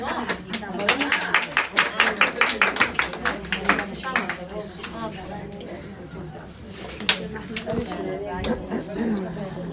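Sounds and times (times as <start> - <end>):
group clapping for the rabbanit: 0.0 - 5.1, 6.9 - 7.7
murmuring voices: 0.0 - 9.7.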